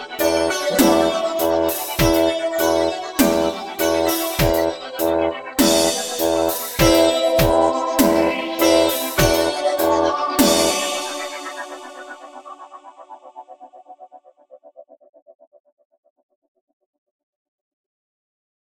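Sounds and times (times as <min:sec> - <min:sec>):
electronic instrumental music: 0:00.0 - 0:14.1.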